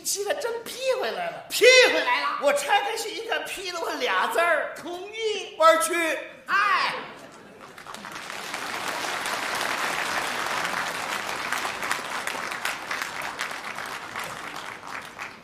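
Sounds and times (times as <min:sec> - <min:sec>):
speech: 0:00.1 - 0:07.2
audience applause: 0:07.5 - 0:15.4.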